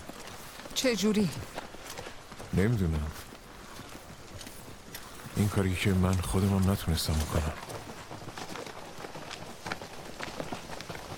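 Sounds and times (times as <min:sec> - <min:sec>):
horse hooves trotting or galloping: 0:00.0 - 0:11.1
speech: 0:00.8 - 0:01.6, 0:02.5 - 0:03.2, 0:05.4 - 0:07.6.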